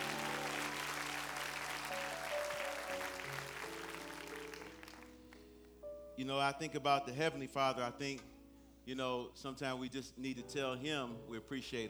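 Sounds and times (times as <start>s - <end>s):
audience applause: 0.0s - 5.4s
speech: 6.2s - 11.8s.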